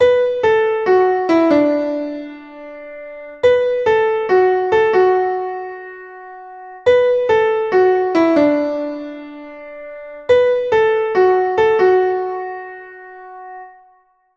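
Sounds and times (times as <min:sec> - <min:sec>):
piano: 0:00.0 - 0:14.3.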